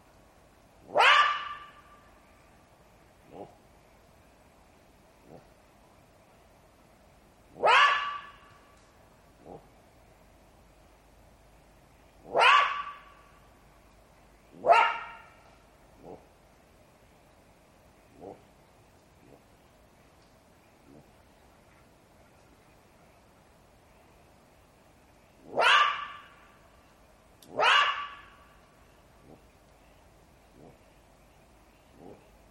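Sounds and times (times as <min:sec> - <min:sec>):
jackal yelping calls: 0:00.9 - 0:01.8, 0:07.6 - 0:08.4, 0:12.3 - 0:13.1, 0:14.6 - 0:15.4, 0:25.5 - 0:26.4, 0:27.5 - 0:28.4.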